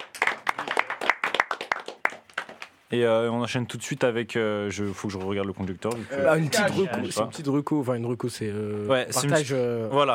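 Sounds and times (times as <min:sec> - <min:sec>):
small group clapping: 0:00.0 - 0:02.9
speech: 0:02.9 - 0:10.1.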